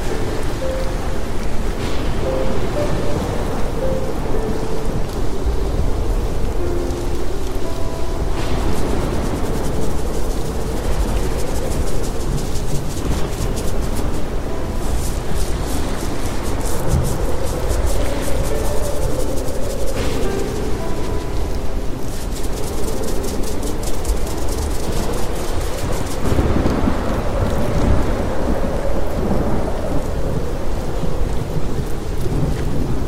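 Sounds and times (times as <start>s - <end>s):
faint soft piano notes: 0.0s - 33.0s
storm rain: 0.0s - 33.0s
storm wind: 0.0s - 33.0s
crackling bursts: 1.8s - 27.6s.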